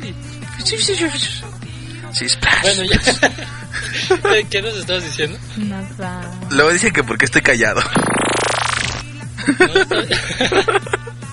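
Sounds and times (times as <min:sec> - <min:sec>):
speech: 0:00.1 - 0:08.1, 0:09.5 - 0:11.0
laughter: 0:02.4 - 0:04.6, 0:09.4 - 0:11.2
fart: 0:07.8 - 0:09.0.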